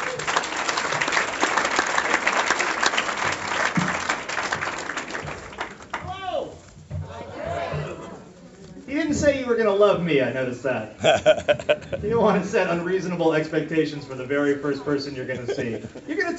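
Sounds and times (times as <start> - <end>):
comedy club audience applause: 0.0 - 6.0
speech: 9.1 - 16.3
laughter: 11.0 - 12.2, 15.2 - 16.3.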